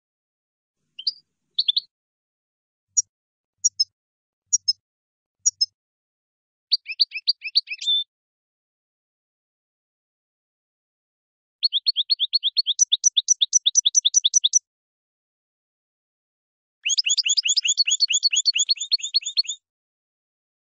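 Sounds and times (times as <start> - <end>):
finch chirps and twittering: 1.0 - 1.9, 5.4 - 5.7, 6.7 - 8.1, 11.6 - 14.6, 16.8 - 19.6.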